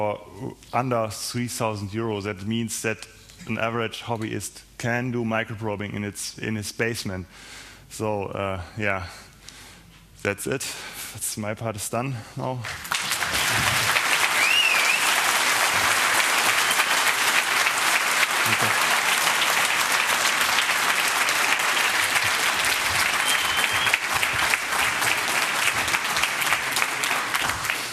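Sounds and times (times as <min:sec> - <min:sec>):
speech: 0:00.0 - 0:09.3, 0:10.2 - 0:12.9
audience applause: 0:12.8 - 0:27.9.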